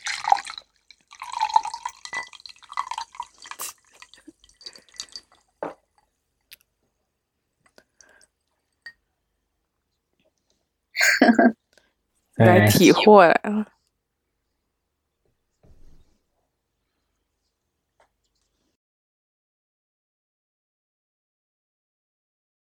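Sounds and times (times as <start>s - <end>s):
fizzing bubbles: 0.0s - 5.6s
speech: 12.4s - 13.7s.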